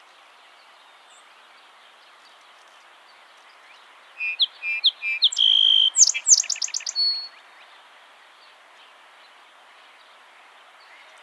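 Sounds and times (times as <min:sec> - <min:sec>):
Song sparrow singing: 0:04.2 - 0:07.4.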